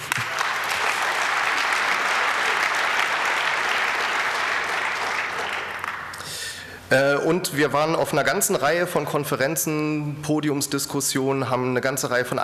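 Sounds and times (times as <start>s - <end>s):
audience applause: 0.0s - 6.2s
speech: 6.9s - 12.4s.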